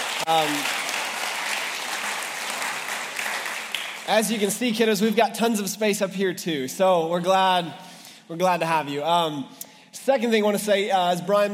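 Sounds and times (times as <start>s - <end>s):
crowd applause: 0.0s - 4.8s
speech: 0.3s - 0.8s, 4.1s - 11.5s.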